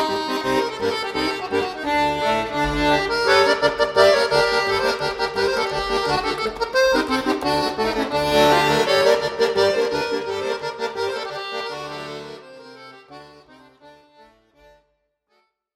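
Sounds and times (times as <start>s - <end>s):
solo accordion: 0.0s - 15.5s.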